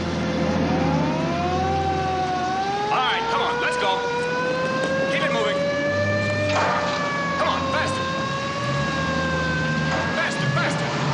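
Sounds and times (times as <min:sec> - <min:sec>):
traffic car engines rumbling as an ambulance pulls away: 0:00.0 - 0:11.1.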